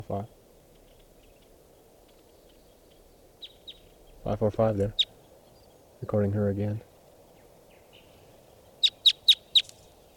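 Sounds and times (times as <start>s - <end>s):
speech: 0.0s - 0.4s, 4.2s - 5.0s, 6.0s - 6.9s
low steady hiss: 0.0s - 10.1s
lone wild bird calling in flight: 0.8s - 5.8s, 7.3s - 10.1s.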